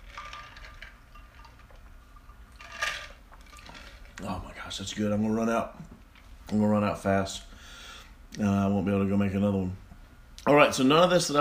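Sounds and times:
ice clinking in a glass of iced tea lemonade: 0:00.0 - 0:04.0
speech: 0:04.2 - 0:05.9, 0:06.5 - 0:07.5, 0:08.4 - 0:09.8, 0:10.4 - 0:11.3.

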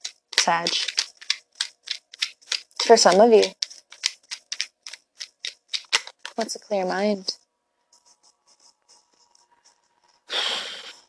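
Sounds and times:
playing cards falling out of a deck: 0:00.0 - 0:06.5
speech: 0:00.5 - 0:00.9, 0:02.9 - 0:03.6, 0:06.4 - 0:07.4.

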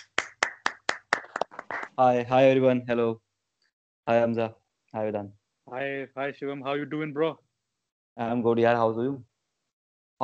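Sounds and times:
audience applause: 0:00.0 - 0:02.0
speech: 0:02.0 - 0:03.2, 0:04.0 - 0:07.4, 0:08.2 - 0:09.3.

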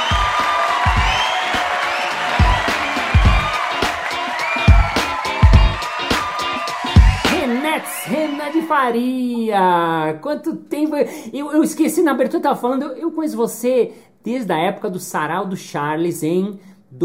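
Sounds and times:
high whistle: 0:00.0 - 0:08.7
audience applause: 0:00.0 - 0:09.0
scattered cheers and whoops: 0:00.0 - 0:09.0
speech: 0:08.7 - 0:17.0.

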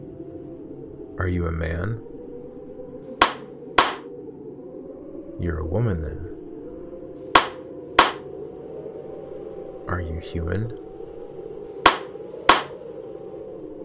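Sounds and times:
speech: 0:01.2 - 0:02.1, 0:05.4 - 0:06.3, 0:09.9 - 0:10.8
hands clapping: 0:03.2 - 0:04.0, 0:07.4 - 0:08.2, 0:11.9 - 0:12.7.

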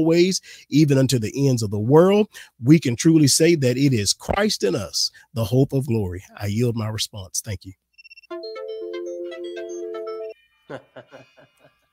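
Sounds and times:
speech: 0:00.0 - 0:07.8, 0:10.7 - 0:11.6
timer alarm electronic melody: 0:08.0 - 0:11.6
laughter: 0:10.7 - 0:11.9.

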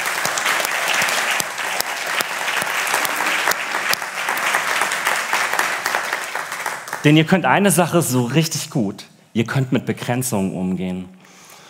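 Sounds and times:
audience applause: 0:00.0 - 0:07.2
speech: 0:07.0 - 0:11.2.

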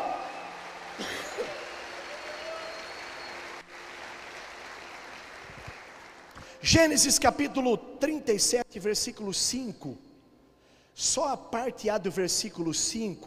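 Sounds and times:
audience applauding: 0:00.0 - 0:06.6
speech: 0:06.6 - 0:10.1, 0:11.0 - 0:13.2.

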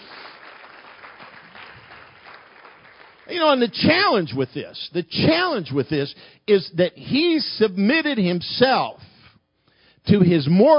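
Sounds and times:
audience hand clapping applause: 0:00.0 - 0:03.8
speech: 0:03.3 - 0:09.1, 0:10.0 - 0:10.7.

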